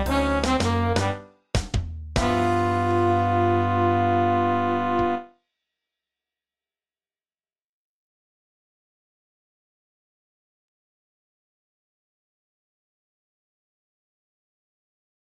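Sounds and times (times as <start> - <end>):
jazz band playing: 0.0 - 1.2, 2.2 - 5.2.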